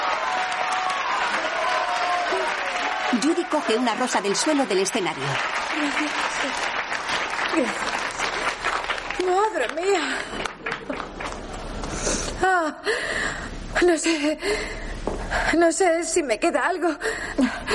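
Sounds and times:
theater audience applauding: 0.0s - 12.0s
speech: 3.1s - 6.8s, 7.5s - 8.0s, 9.2s - 10.5s, 12.5s - 17.7s.

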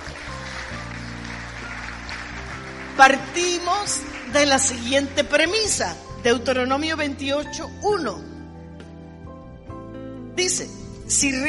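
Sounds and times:
crowd applauding: 0.0s - 5.7s
speech: 3.0s - 8.3s, 10.4s - 11.4s.

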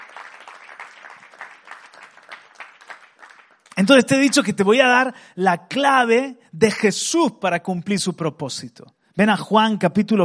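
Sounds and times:
audience applauding: 0.0s - 4.5s
speech: 3.8s - 10.2s.

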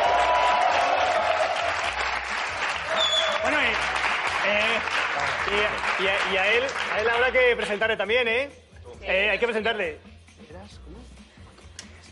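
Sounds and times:
audience applause: 0.0s - 7.2s
speech: 4.5s - 11.0s.

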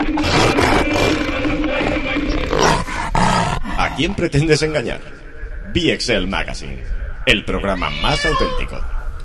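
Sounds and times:
big cat roaring: 0.2s - 4.2s
speech: 4.0s - 9.0s.

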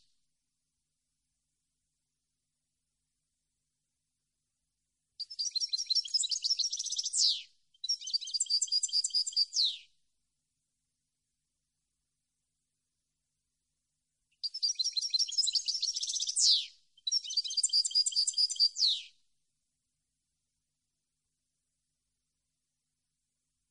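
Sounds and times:
European goldfinch twittering song: 5.2s - 9.8s, 14.4s - 19.1s.

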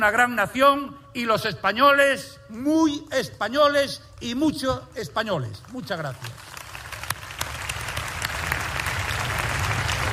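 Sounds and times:
speech: 0.0s - 6.5s
audience applause: 6.3s - 10.1s.

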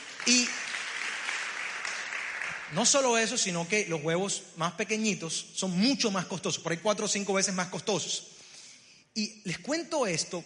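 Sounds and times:
audience applause: 0.0s - 3.0s
speech: 2.7s - 8.4s, 9.2s - 10.4s.

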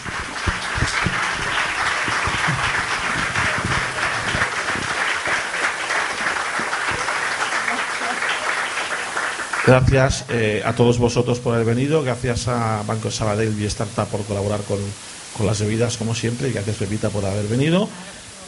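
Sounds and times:
sustained audience applause: 0.0s - 10.6s
speech: 9.7s - 18.2s.

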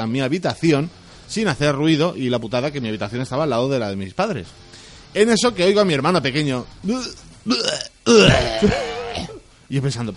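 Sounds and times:
speech: 0.0s - 10.1s
voice imitating someone vomiting: 6.9s - 9.4s.

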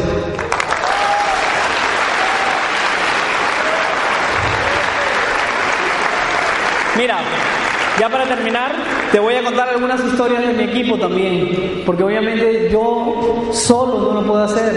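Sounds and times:
audience applause: 0.4s - 9.6s
speech: 7.0s - 14.7s.

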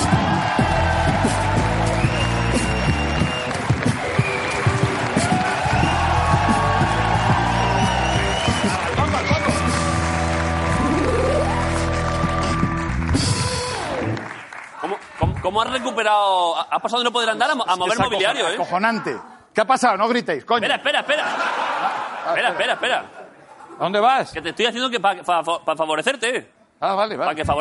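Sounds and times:
audience applause: 0.0s - 16.2s
speech: 15.6s - 23.2s, 23.8s - 27.5s
laughter: 20.7s - 24.0s.

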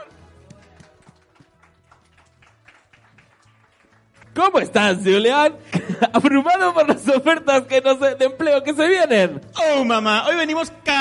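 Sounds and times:
audience applause: 0.4s - 4.4s
speech: 4.4s - 10.9s
laughter: 5.6s - 7.2s.

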